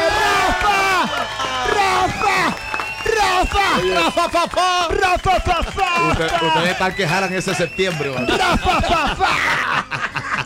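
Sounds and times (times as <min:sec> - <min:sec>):
audience applause: 0:00.0 - 0:09.7
laughter: 0:00.6 - 0:10.4
speech: 0:03.8 - 0:09.8.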